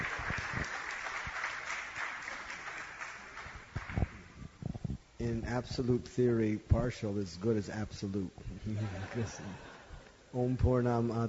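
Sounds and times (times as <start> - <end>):
crowd clapping: 0.0 - 4.4
speech: 5.2 - 9.7, 10.3 - 11.2.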